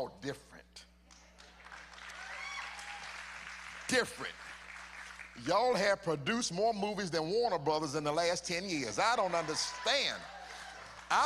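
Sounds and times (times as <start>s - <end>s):
speech: 0.0s - 0.9s, 3.9s - 4.5s, 5.4s - 10.4s, 11.1s - 11.2s
crowd applauding: 1.4s - 5.8s, 9.0s - 11.2s
whoops and shouts: 2.1s - 3.2s, 9.4s - 11.0s.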